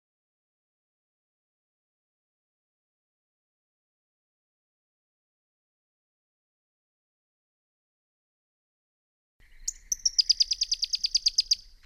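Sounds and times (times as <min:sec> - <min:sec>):
Pyrrhuloxia giving a rapid chattering series of crisp high chip notes: 0:09.7 - 0:11.6.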